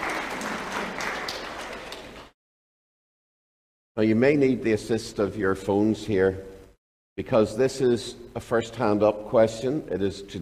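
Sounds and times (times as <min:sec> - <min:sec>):
crowd applauding: 0:00.0 - 0:02.4
speech: 0:04.0 - 0:06.5, 0:07.2 - 0:10.4.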